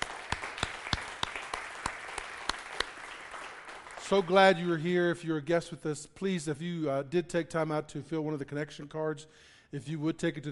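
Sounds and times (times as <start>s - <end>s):
audience applause: 0.0s - 4.6s
speech: 4.1s - 10.4s.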